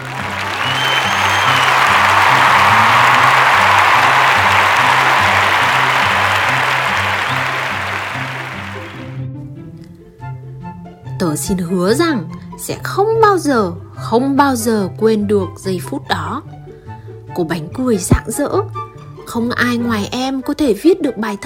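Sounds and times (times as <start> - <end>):
crowd applauding and cheering: 0.0 - 9.2
speech: 11.3 - 16.6, 17.4 - 21.4.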